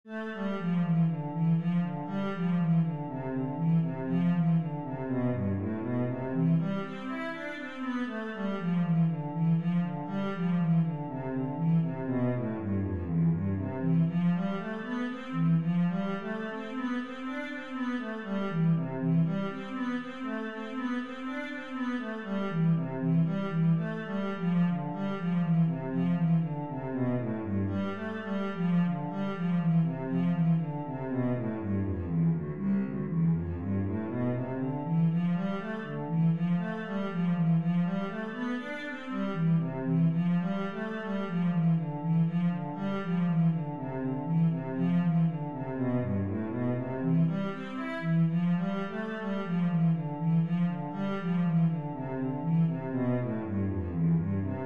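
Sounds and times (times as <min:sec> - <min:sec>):
cello playing an etude: 0:00.1 - 0:54.6.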